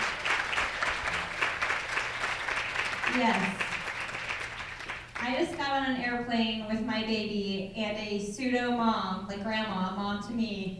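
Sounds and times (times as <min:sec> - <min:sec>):
audience applause: 0:00.0 - 0:05.4
speech: 0:03.2 - 0:03.6, 0:05.3 - 0:10.7.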